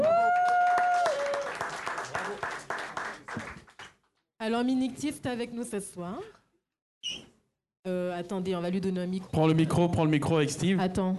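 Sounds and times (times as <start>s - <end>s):
audience applause: 0.0s - 3.9s
speech: 4.5s - 6.4s, 7.8s - 11.1s.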